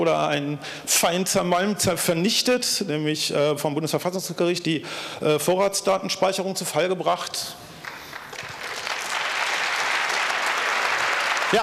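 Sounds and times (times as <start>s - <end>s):
speech: 0.0s - 7.7s
audience applause: 7.8s - 11.6s.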